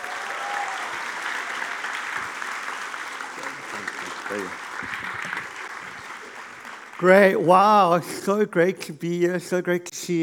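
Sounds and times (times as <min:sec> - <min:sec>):
audience applause welcoming a speaker: 0:00.0 - 0:08.0
speech: 0:04.3 - 0:05.0, 0:07.0 - 0:10.2.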